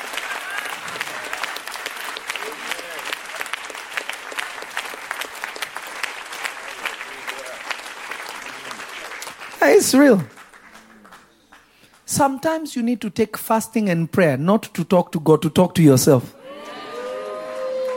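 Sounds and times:
audience clapping: 0.0 - 12.6, 16.4 - 17.9
speech: 9.8 - 10.4, 12.2 - 16.4.

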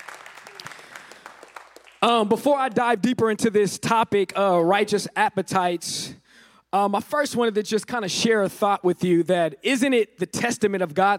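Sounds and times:
audience round of applause: 0.0 - 2.3
speech: 2.0 - 11.1.

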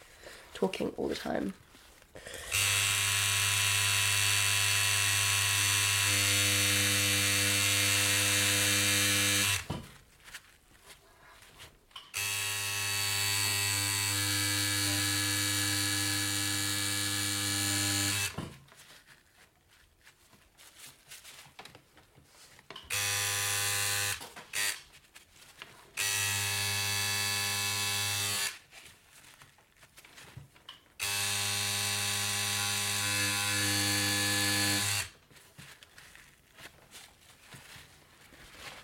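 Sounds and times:
speech: 0.6 - 2.4
tattoo machine buzzing while tattooing: 2.5 - 9.7, 12.2 - 18.4, 22.9 - 24.8, 26.0 - 28.6, 31.0 - 35.1.

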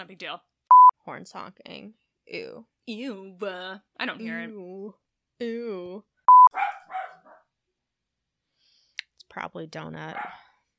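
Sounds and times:
speech: 0.0 - 6.6, 9.3 - 10.4
dog barking: 6.5 - 7.5, 10.1 - 10.5.

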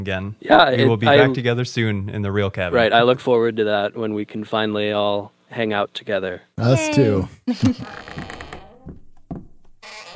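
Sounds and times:
speech: 0.0 - 8.2
door closing sound effect: 7.6 - 10.1.

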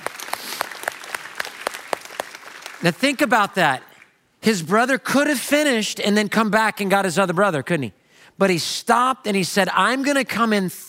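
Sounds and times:
hand claps: 0.0 - 3.0
speech: 2.8 - 10.8.

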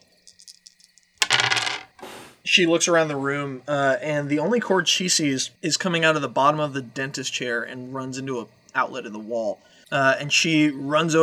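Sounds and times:
dice rattling in a cupped hand: 0.2 - 2.0
speech: 2.5 - 11.2.

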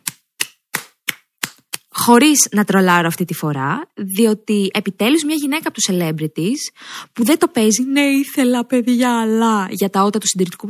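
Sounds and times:
hand clapping applause: 0.0 - 1.9
speech: 2.0 - 10.6.

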